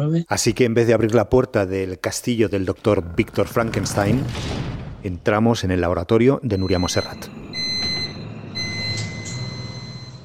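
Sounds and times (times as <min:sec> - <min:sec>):
speech: 0:00.0 - 0:07.4
laminar flow cabinet starting up: 0:06.6 - 0:10.2.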